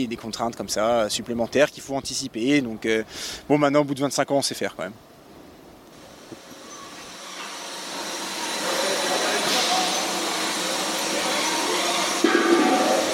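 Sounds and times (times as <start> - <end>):
speech: 0.0 - 5.2
brewery keg filling line running: 6.0 - 13.1.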